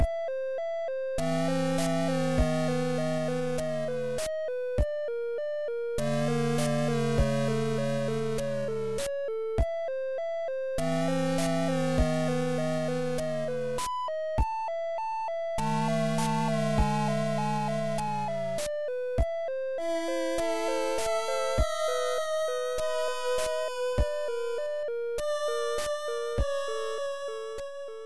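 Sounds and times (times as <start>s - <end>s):
ghost house music: 0.0s - 28.0s.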